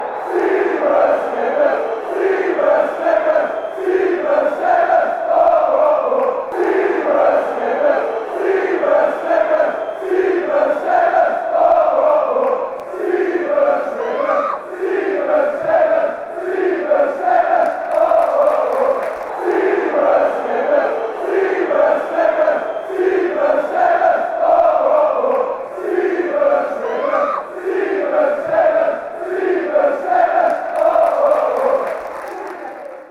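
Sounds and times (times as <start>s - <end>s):
football crowd chanting: 0.0s - 33.0s.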